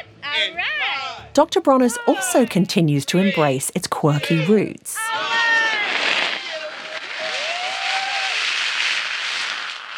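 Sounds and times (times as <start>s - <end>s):
speech: 0.4s - 5.3s
fire hose spraying soap suds: 5.5s - 9.9s.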